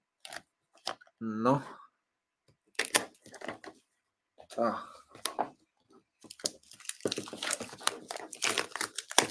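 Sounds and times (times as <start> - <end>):
speech: 1.2 - 1.8, 4.6 - 4.9
plastic product packaging being torn open: 6.2 - 9.3.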